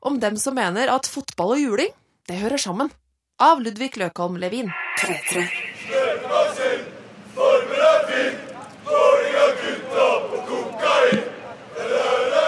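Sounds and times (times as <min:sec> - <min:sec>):
speech: 0:00.1 - 0:06.9
large group of male football supporters chanting while marching through Bergen: 0:04.8 - 0:12.4.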